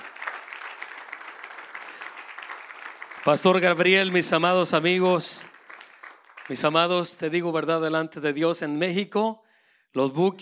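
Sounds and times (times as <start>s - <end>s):
audience applauding: 0.0s - 7.2s
speech: 3.2s - 5.5s, 6.5s - 10.3s.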